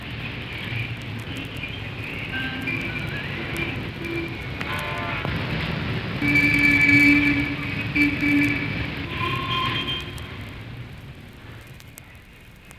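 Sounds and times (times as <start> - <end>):
New York street traffic: 0.0 - 12.7.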